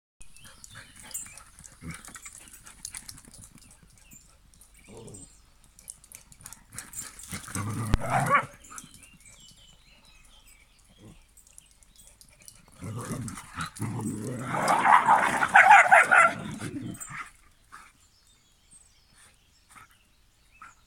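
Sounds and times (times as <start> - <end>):
dogs growling and barking: 4.9 - 5.3, 6.4 - 8.9, 12.6 - 17.4.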